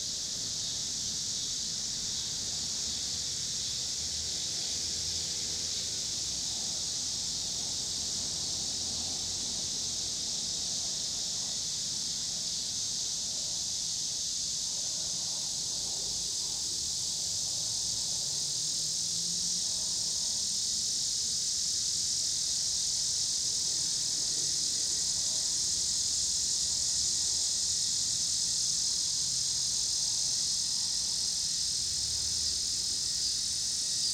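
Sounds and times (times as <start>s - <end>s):
cicadas droning: 0.0s - 34.1s.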